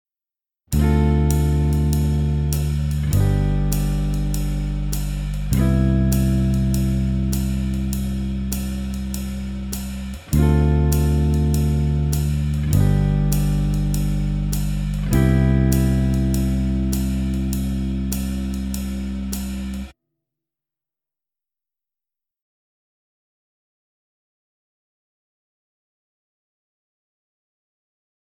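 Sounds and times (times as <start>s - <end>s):
ii V I chord progression: 0.7s - 19.9s.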